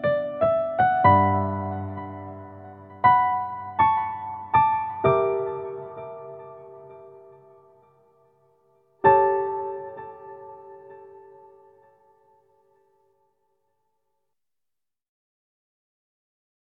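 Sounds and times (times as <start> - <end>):
piano piece: 0.0 - 13.2.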